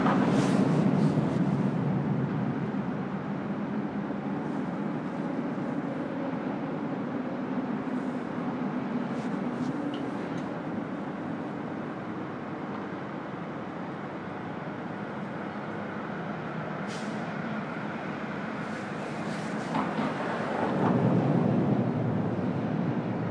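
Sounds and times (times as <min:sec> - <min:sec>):
bridge on Harrison over Chicago River: 0:00.0 - 0:23.3.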